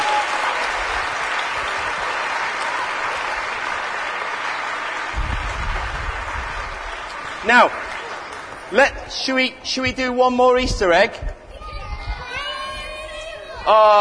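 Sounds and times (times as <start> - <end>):
round of applause: 0.0 - 8.8
speech: 7.5 - 7.9, 8.7 - 11.4, 13.7 - 13.9.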